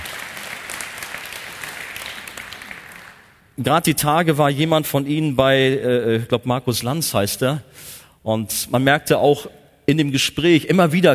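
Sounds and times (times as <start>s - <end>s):
hands clapping: 0.0s - 3.5s
speech: 3.6s - 11.1s.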